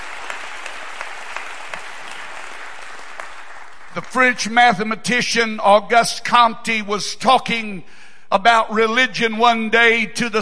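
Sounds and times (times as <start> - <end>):
audience clapping hands: 0.0 - 4.6
speech: 4.0 - 10.3.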